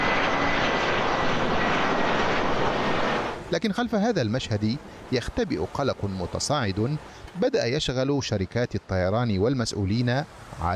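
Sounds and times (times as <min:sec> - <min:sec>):
airplanes taking off and landing at Brussels Airport: 0:00.0 - 0:07.6
speech: 0:03.5 - 0:10.7.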